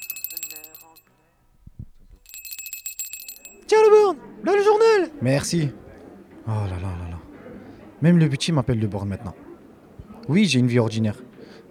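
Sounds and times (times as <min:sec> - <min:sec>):
shop entrance door chime: 0:00.0 - 0:01.1, 0:02.2 - 0:04.1
speech: 0:03.7 - 0:05.8, 0:06.5 - 0:07.2, 0:08.0 - 0:09.4, 0:10.3 - 0:11.2.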